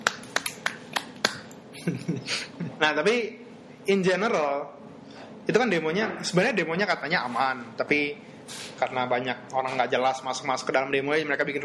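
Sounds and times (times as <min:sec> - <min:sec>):
hand clapping: 0:00.0 - 0:01.6
speech: 0:01.8 - 0:04.9, 0:05.5 - 0:11.6.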